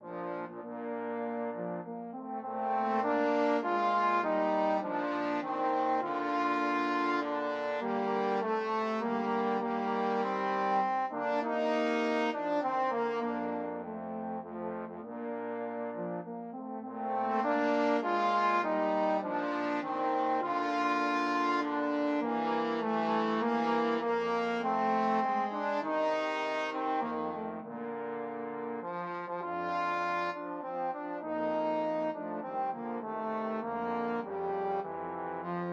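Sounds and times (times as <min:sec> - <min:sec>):
trombones playing a nocturne: 0:00.0 - 0:35.7.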